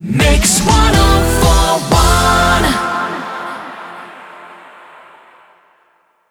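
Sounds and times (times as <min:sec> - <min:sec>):
rapid fire music mix: 0:00.0 - 0:03.4.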